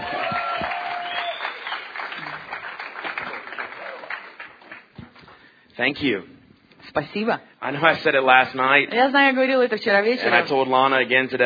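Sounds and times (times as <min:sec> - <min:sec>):
enthusiastic audience applause welcoming a guest on stage: 0:00.0 - 0:05.2
speech: 0:05.8 - 0:06.3, 0:06.9 - 0:11.4.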